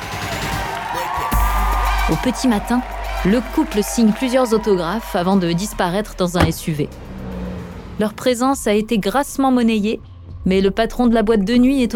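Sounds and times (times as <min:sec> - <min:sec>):
nightclub crowd cheering and whooping: 0:00.0 - 0:05.2
speech: 0:02.1 - 0:07.1, 0:08.0 - 0:11.9
heavy low bass rumble: 0:05.2 - 0:09.2.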